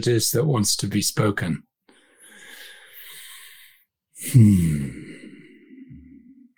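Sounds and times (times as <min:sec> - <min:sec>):
speech: 0:00.0 - 0:01.7, 0:04.2 - 0:05.0
deep breath taken before speaking: 0:01.9 - 0:06.5.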